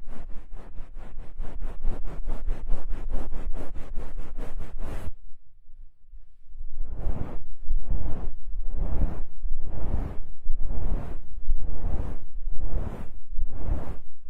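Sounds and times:
ear massage rubbing strokes: 0:00.0 - 0:05.2, 0:06.8 - 0:14.2
low rumble: 0:05.7 - 0:14.2.

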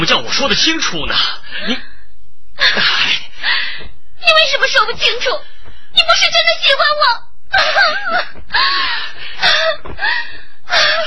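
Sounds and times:
speech: 0:00.0 - 0:01.9, 0:02.6 - 0:11.0
person crying in a Huangmei opera drama: 0:07.5 - 0:10.0.

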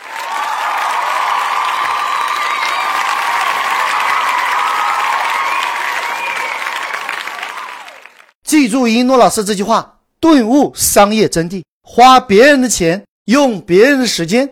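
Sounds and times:
thunderous applause: 0:00.0 - 0:08.3
speech: 0:08.5 - 0:14.5.

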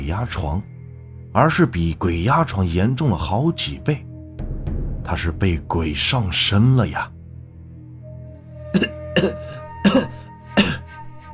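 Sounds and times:
speech: 0:00.0 - 0:00.7, 0:01.3 - 0:04.1, 0:05.0 - 0:07.2, 0:08.7 - 0:10.2
violent coughing: 0:08.8 - 0:10.9.

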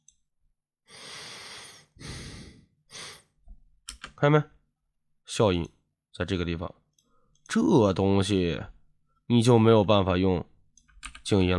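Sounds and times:
person drawing breath in through the nose: 0:00.9 - 0:03.4
speech: 0:04.2 - 0:04.6, 0:05.3 - 0:06.8, 0:07.5 - 0:10.5, 0:11.3 - 0:11.5.

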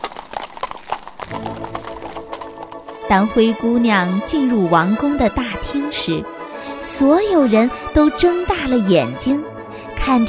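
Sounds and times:
hooves of a horse pulling a carriage trotting: 0:00.0 - 0:04.5
speech: 0:03.1 - 0:10.2.

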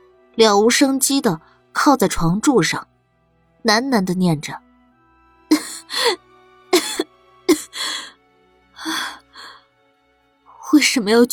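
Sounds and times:
speech: 0:00.4 - 0:02.9, 0:03.6 - 0:04.6, 0:10.8 - 0:11.3
weak sickly girl coughing: 0:05.5 - 0:06.2, 0:06.8 - 0:08.1.

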